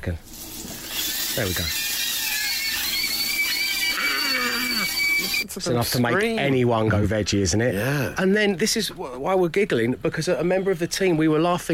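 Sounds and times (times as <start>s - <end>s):
speech: 0.0s - 0.4s, 1.4s - 1.9s, 4.9s - 11.7s
sausages screaming in a pan: 0.3s - 5.4s.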